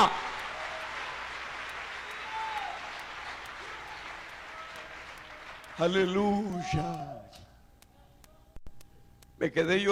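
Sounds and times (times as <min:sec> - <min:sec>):
speech: 0:00.0 - 0:00.3, 0:05.8 - 0:07.4, 0:09.4 - 0:09.9
audience applause: 0:00.0 - 0:06.2.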